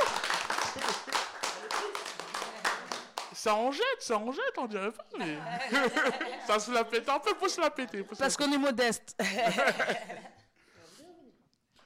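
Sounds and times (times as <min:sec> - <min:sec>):
laughter: 0:00.0 - 0:03.1, 0:05.0 - 0:08.6, 0:09.2 - 0:10.4
small group clapping hands: 0:00.0 - 0:03.8
speech: 0:03.4 - 0:10.3.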